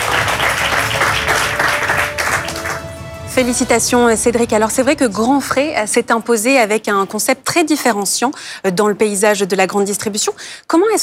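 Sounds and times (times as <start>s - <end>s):
audience applause: 0.0s - 3.3s
speech: 3.4s - 11.0s.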